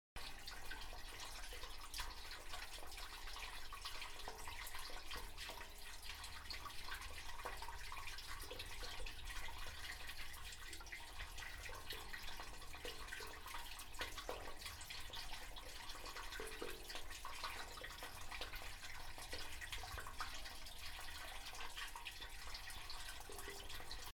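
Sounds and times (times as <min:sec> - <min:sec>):
water pipe: 0:00.2 - 0:24.1.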